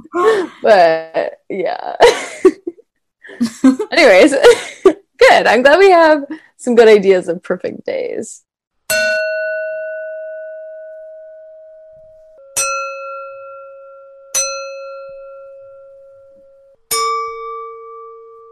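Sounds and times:
speech: 0:00.1 - 0:02.6, 0:03.6 - 0:04.7, 0:05.4 - 0:09.4
glass ringing at its resonant frequency: 0:08.9 - 0:18.5.

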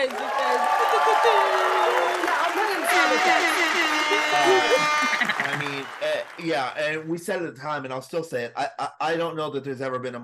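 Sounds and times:
applause: 0:00.0 - 0:07.1
laughter: 0:00.1 - 0:06.8
speech: 0:04.3 - 0:10.2.

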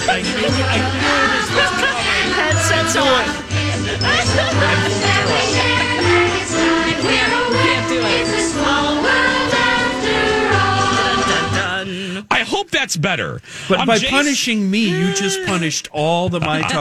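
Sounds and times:
cheerful bouncy theme park ride song: 0:00.0 - 0:12.1
laughter: 0:00.0 - 0:12.3, 0:13.7 - 0:16.8
speech: 0:00.1 - 0:06.1, 0:12.6 - 0:16.8.

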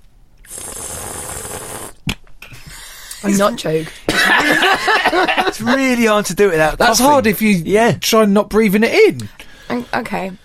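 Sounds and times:
slurping wine to aerate it: 0:00.4 - 0:02.0
speech: 0:03.2 - 0:10.4
laughter: 0:04.1 - 0:06.1.

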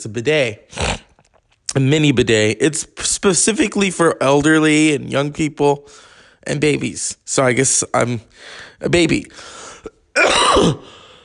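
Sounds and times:
speech: 0:00.0 - 0:01.0, 0:01.8 - 0:11.0
rasping cough: 0:09.8 - 0:11.0.

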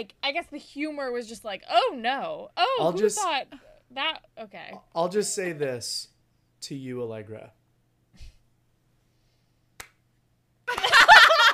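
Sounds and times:
speech: 0:00.0 - 0:07.6
slow clap: 0:09.7 - 0:11.2
laughter: 0:10.7 - 0:11.5.

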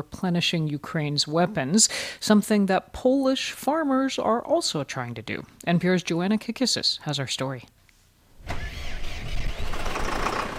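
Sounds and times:
speech: 0:00.0 - 0:07.8
tractor engine starting: 0:08.4 - 0:10.5.

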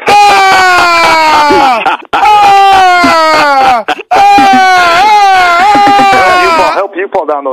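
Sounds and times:
laughter: 0:00.0 - 0:06.9
person imitating a scream with anguished wails: 0:00.0 - 0:06.9
gasping breaths: 0:03.8 - 0:04.2.

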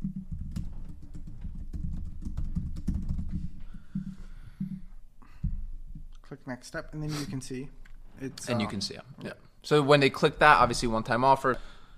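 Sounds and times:
typing on a computer keyboard to fill in a form: 0:00.0 - 0:03.6
speech: 0:06.3 - 0:11.9.

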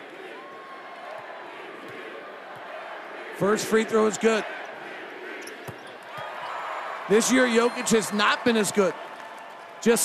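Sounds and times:
arena crowd chanting MVP: 0:00.0 - 0:05.7
speech: 0:03.4 - 0:04.6, 0:07.1 - 0:09.0, 0:09.8 - 0:10.0.

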